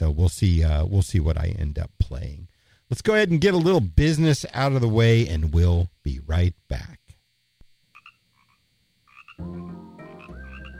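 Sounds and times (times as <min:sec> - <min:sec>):
speech: 0:00.2 - 0:07.0, 0:09.4 - 0:09.8
frogs croaking: 0:07.8 - 0:10.7.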